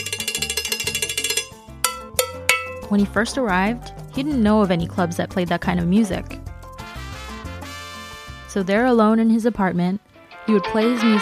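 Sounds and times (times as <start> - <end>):
cowbell playing a quick rhythm: 0.0 - 3.2, 10.3 - 11.2
speech: 2.9 - 6.3, 8.6 - 11.2.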